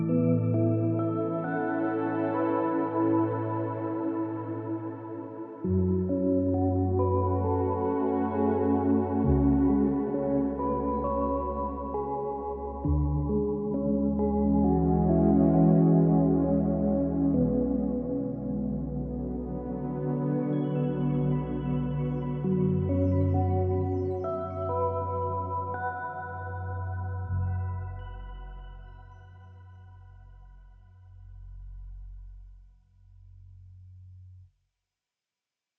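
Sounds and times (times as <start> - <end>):
music track without sound effects: 0.0 - 29.1.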